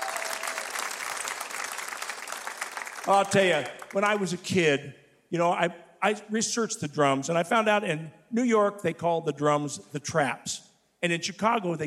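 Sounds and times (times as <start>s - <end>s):
audience applause: 0.0s - 4.0s
speech: 3.1s - 11.8s.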